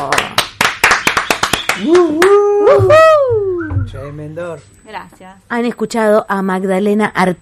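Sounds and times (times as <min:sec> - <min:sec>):
audience applause: 0:00.0 - 0:02.6
speech: 0:01.8 - 0:03.1, 0:04.1 - 0:07.3.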